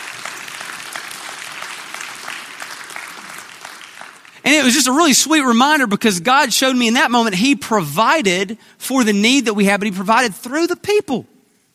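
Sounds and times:
crowd clapping: 0.0s - 5.1s
speech: 4.5s - 11.3s.

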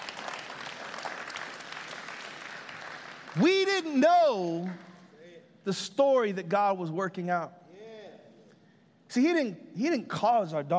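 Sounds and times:
audience applause: 0.0s - 3.8s
speech: 3.4s - 4.9s, 5.6s - 7.6s, 9.1s - 10.7s.

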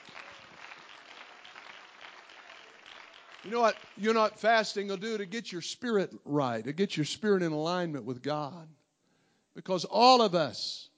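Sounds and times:
audience clapping hands: 0.0s - 5.4s
speech: 3.4s - 8.8s, 9.6s - 10.9s.

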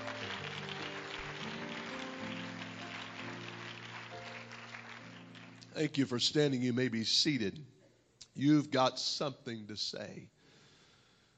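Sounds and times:
audience clapping: 0.0s - 6.0s
sustained organ or keyboard chords: 0.0s - 7.3s
speech: 5.8s - 7.8s, 8.4s - 10.4s.

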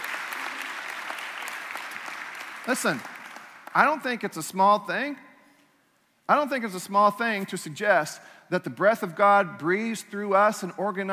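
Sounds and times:
audience applause: 0.0s - 3.8s
speech: 2.6s - 3.1s, 3.7s - 5.2s, 6.3s - 11.1s.

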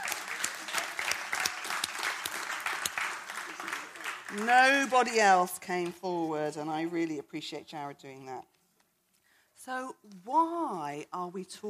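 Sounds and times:
audience applause: 0.0s - 4.8s
speech: 4.3s - 8.5s, 9.6s - 11.6s.

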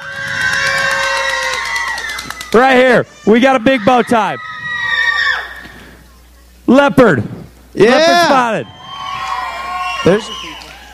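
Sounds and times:
crowd of children cheering and shouting: 0.0s - 5.7s, 8.0s - 10.9s
speech: 2.5s - 4.5s, 6.7s - 8.8s, 10.0s - 10.5s.

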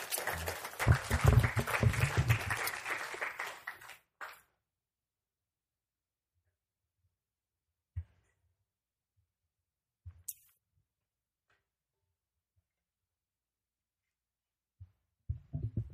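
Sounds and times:
audience applause: 0.0s - 4.5s.

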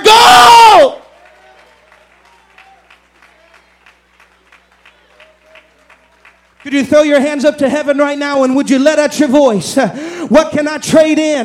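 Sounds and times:
audience clapping hands: 1.0s - 8.1s
speech: 6.6s - 11.4s.

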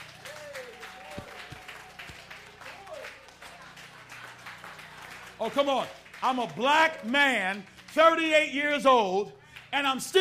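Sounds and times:
crowd murmur: 0.0s - 5.4s
audience clapping: 0.0s - 10.1s
speech: 5.4s - 10.1s.

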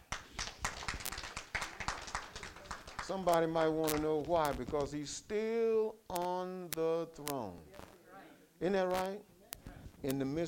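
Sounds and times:
crowd clapping: 0.0s - 5.0s
speech: 3.1s - 8.0s, 8.6s - 9.3s, 10.0s - 10.4s.

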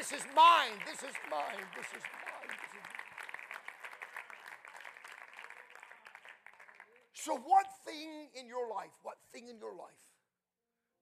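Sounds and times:
audience clapping: 0.0s - 7.8s
speech: 0.1s - 3.0s, 7.2s - 10.1s.

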